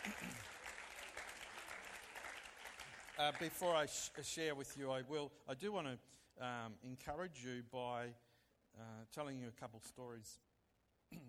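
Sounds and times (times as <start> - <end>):
audience applause: 0.0 - 4.1
speech: 3.2 - 10.4.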